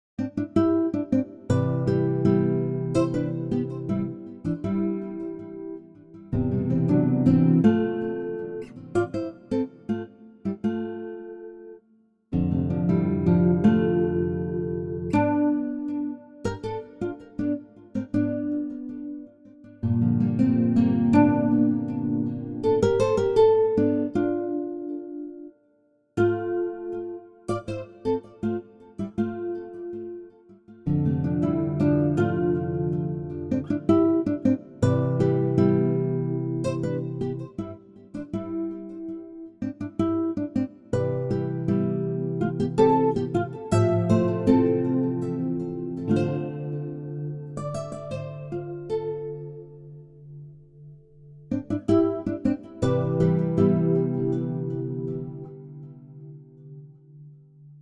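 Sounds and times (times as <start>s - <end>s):
guitar mantra music: 0.2s - 11.7s, 12.4s - 25.5s, 26.3s - 57.3s.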